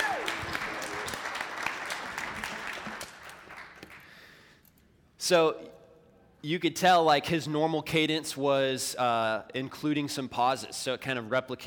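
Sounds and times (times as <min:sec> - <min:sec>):
group giving a round of applause: 0:00.0 - 0:04.3
speech: 0:05.3 - 0:05.8, 0:06.4 - 0:11.6.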